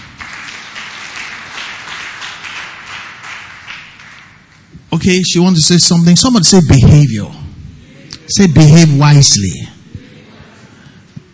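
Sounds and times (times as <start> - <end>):
audience clapping: 0.0 - 4.7
speech: 4.9 - 7.5, 8.3 - 9.8.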